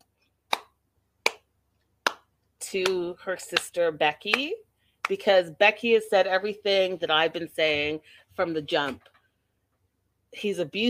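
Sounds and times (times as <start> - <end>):
slow clapping: 0.5 - 5.2
speech: 2.7 - 9.1, 10.3 - 10.8.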